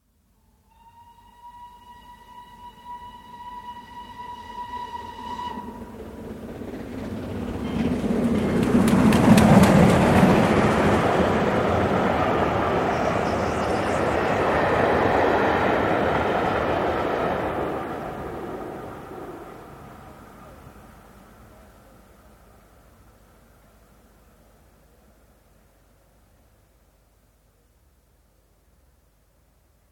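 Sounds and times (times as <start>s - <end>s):
steam train passing at very high speed on welded track: 0.7s - 24.4s.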